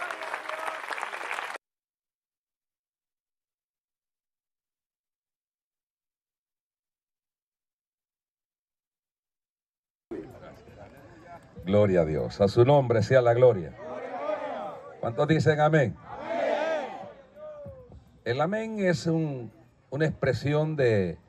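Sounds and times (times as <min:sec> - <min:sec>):
audience applause: 0:00.0 - 0:01.6
speech: 0:11.6 - 0:13.9, 0:15.0 - 0:16.4, 0:18.3 - 0:21.2.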